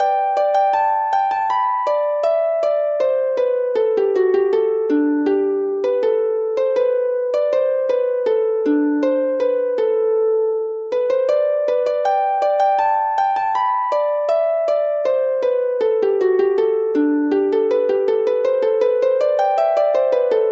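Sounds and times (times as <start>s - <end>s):
harp playing Welsh-style tunes: 0.0s - 20.4s.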